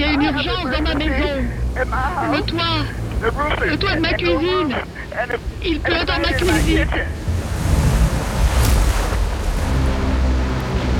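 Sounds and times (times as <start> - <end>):
speech: 0.6 - 7.2
wind buffeting: 4.7 - 10.6
storm surge waves crashing against levees: 4.7 - 10.9.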